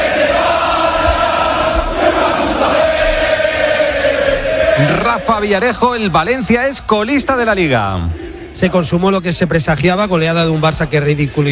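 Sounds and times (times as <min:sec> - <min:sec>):
football crowd shouting protests against the club management in Valencia: 0:00.0 - 0:06.1
speech: 0:04.8 - 0:11.5.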